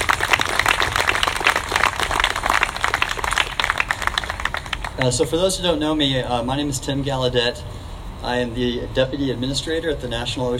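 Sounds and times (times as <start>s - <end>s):
audience applause: 0.0s - 5.2s
speech: 5.0s - 10.5s.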